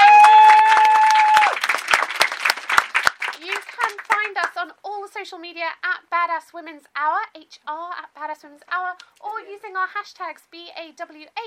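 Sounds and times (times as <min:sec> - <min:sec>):
audience clapping: 0:00.0 - 0:04.6
speech: 0:06.6 - 0:11.4.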